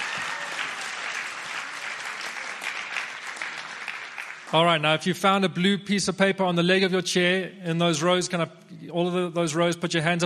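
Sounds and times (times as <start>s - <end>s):
audience applause from a large audience: 0.0s - 4.9s
speech: 4.5s - 10.2s.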